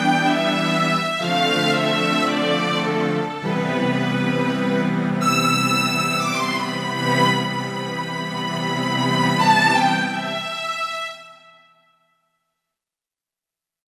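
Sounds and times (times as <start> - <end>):
synthesizer string patch on a Roland JV-880: 0.0 - 11.4.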